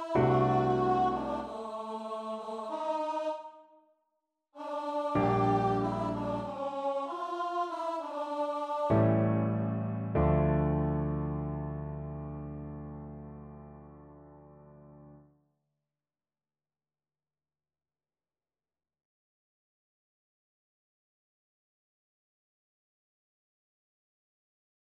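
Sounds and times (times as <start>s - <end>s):
choir singing: 0.0s - 3.8s, 4.6s - 11.6s.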